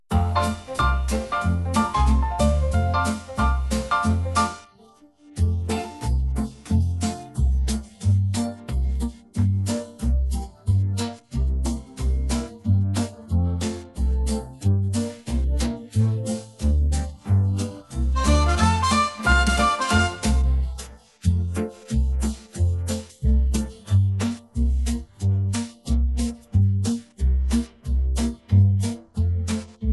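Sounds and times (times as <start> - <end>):
instrumental backing music: 0.1 - 29.9.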